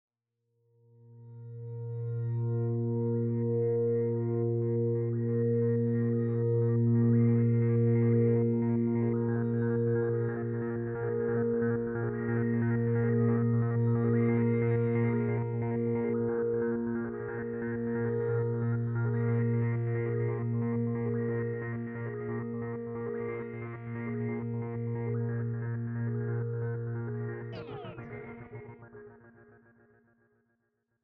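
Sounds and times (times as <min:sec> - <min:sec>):
ambience: 0:02.0 - 0:29.1.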